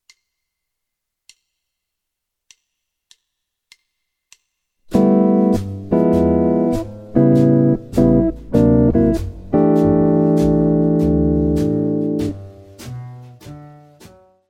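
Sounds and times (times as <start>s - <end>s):
guitar lick: 4.9s - 14.1s.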